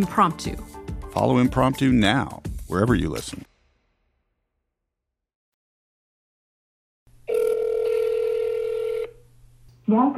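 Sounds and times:
speech: 0.0 - 3.5, 9.9 - 10.1
telephone tone while calling a disconnected number: 7.3 - 9.2.

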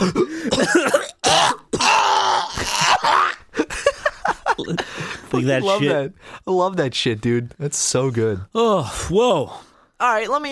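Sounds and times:
coughing fit: 0.0 - 3.4
laughter: 2.6 - 6.2
speech: 5.4 - 10.4.

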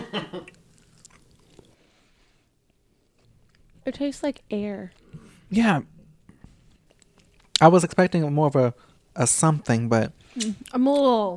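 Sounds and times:
speech: 0.1 - 0.6, 3.9 - 5.9, 7.6 - 11.3
snacks being bitten and chewed: 0.3 - 1.8, 6.9 - 7.7.

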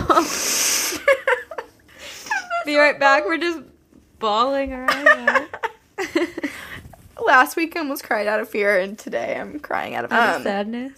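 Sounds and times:
person blowing nose: 0.1 - 1.1
speech: 2.7 - 6.6, 7.2 - 10.9.

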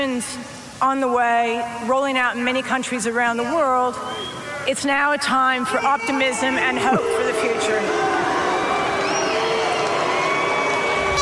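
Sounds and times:
speech: 0.0 - 8.1
whistle-like tone: 4.0 - 4.5
tennis crowd booing: 5.7 - 11.1.

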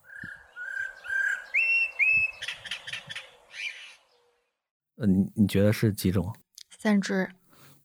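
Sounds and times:
Eurasian blackbird calling: 0.0 - 4.3
speech: 5.0 - 7.4.

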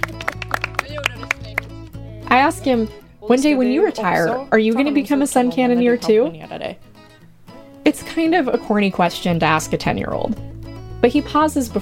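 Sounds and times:
round of applause: 0.0 - 1.8
speech: 2.3 - 6.9, 7.9 - 11.7.

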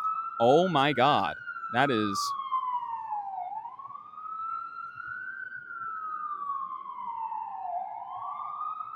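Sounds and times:
fire department ladder truck siren wailing in New York City: 0.0 - 8.9
speech: 0.4 - 2.4.

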